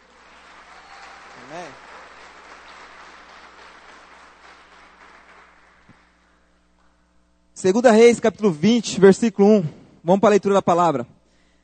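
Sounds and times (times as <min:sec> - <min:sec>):
audience applause: 0:00.0 - 0:06.4
speech: 0:01.5 - 0:01.9, 0:07.6 - 0:11.2.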